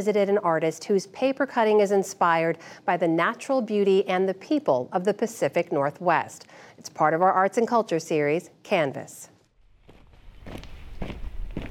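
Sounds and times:
speech: 0.0 - 9.3
footsteps on a walk in the woods near Olympia, Washington: 9.6 - 11.7.

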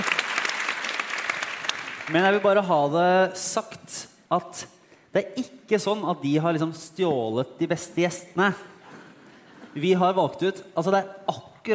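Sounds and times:
audience applauding: 0.0 - 2.5
speech: 2.1 - 8.7, 9.8 - 11.7.

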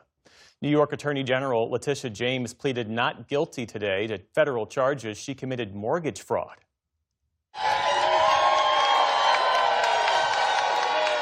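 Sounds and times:
speech: 0.6 - 6.7
people clapping: 7.6 - 11.2
supporters cheering outside a federal courthouse in Virginia: 7.6 - 11.2.

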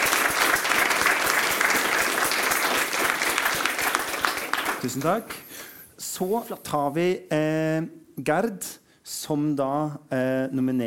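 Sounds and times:
audience applause: 0.0 - 5.4
speech: 4.8 - 5.5, 6.2 - 10.8.

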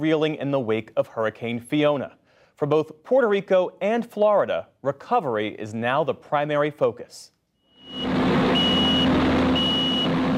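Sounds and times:
speech: 0.0 - 8.1
high-pitched reversing alarm beeps: 7.7 - 10.2
heavy machinery clearing storm debris: 8.0 - 10.3.

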